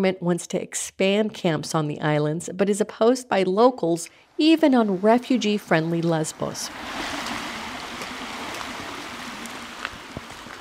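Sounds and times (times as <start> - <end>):
speech: 0.0 - 7.2
flowing creek water: 4.4 - 10.5.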